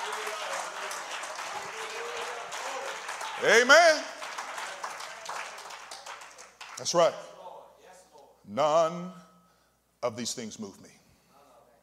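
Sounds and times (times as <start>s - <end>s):
audience clapping hands: 0.0s - 7.2s
speech: 3.4s - 4.1s, 6.8s - 7.3s, 8.5s - 9.2s, 10.0s - 11.0s.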